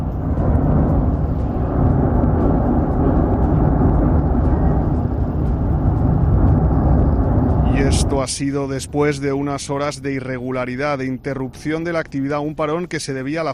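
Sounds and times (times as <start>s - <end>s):
volcano roaring: 0.0s - 12.2s
speech: 8.2s - 13.5s.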